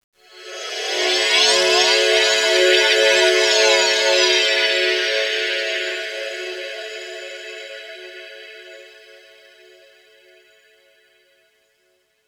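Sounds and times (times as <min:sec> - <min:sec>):
FM synth pad for underground UK house and electro: 0:00.3 - 0:09.2.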